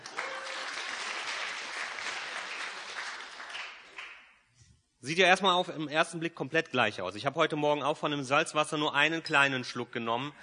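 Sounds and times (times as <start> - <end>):
crowd applause: 0.0 - 4.2
speech: 5.0 - 10.4.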